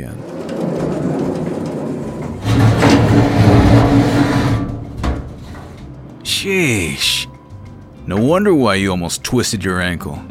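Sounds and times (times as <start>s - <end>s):
speech: 0.0s - 0.3s, 6.4s - 7.3s, 8.1s - 10.2s
old outdated elevator doors closing: 0.0s - 5.9s.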